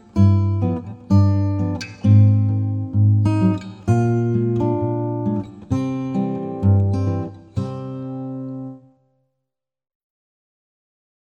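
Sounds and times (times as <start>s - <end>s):
steel string guitar: 0.0s - 9.0s.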